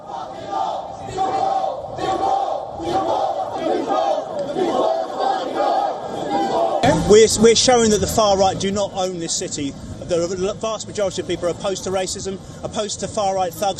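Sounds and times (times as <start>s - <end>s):
counter-protest crowd against racism chanting: 0.0s - 7.1s
speech: 7.1s - 13.7s.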